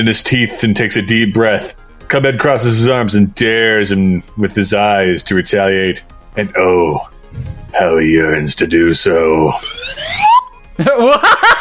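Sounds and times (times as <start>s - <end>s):
speech: 0.0s - 11.6s
slide whistle gliding upward: 9.6s - 10.6s
laughter: 10.8s - 11.6s.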